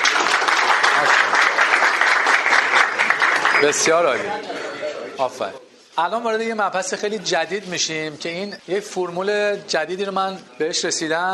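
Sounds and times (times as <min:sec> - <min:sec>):
audience applause: 0:00.0 - 0:04.4
speech: 0:03.6 - 0:04.6, 0:05.2 - 0:11.3.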